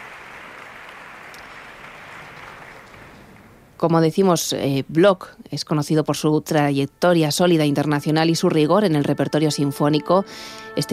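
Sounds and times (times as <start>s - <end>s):
audience applause for concertmaster: 0.0s - 3.6s
speech: 3.8s - 10.9s.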